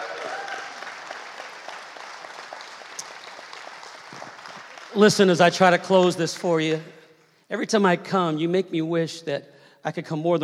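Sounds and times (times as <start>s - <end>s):
audience clapping hands: 0.0s - 6.3s
speech: 4.9s - 10.4s.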